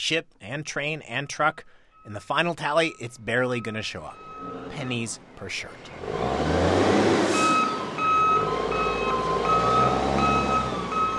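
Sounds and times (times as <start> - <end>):
speech: 0.0 - 6.7
heavy container-handling machine diesel engine rumbling: 0.8 - 11.1
container-handling machine reversing alarm beeps at port: 1.4 - 5.1, 7.3 - 11.1.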